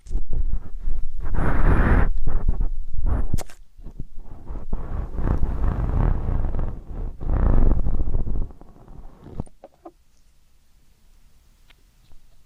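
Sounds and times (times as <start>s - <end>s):
ear canal cleaning scraping: 0.0s - 9.9s.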